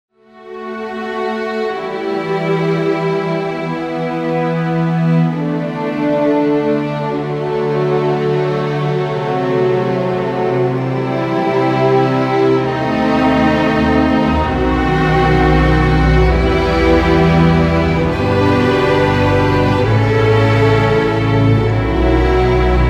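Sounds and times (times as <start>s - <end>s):
40 strings: 0.2s - 22.8s.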